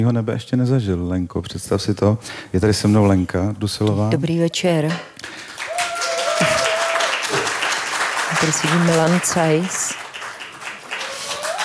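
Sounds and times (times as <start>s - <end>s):
speech: 0.0s - 5.2s, 8.4s - 10.0s
live audience applause: 5.3s - 11.6s.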